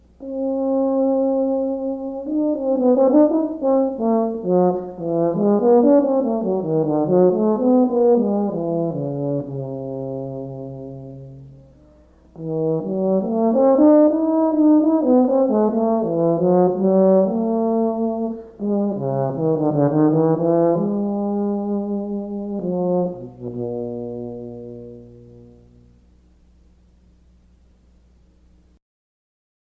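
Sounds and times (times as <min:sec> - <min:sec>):
euphonium: 0:00.0 - 0:28.7.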